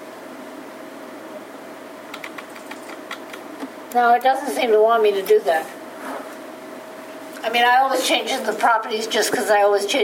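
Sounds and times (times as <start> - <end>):
steady hum: 0.0 - 10.0
computer keyboard typing: 2.1 - 3.4
speech: 3.9 - 5.8, 7.4 - 10.0.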